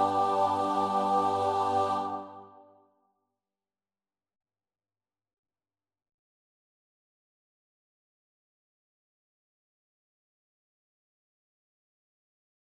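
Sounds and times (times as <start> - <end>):
choir singing: 0.0 - 2.8.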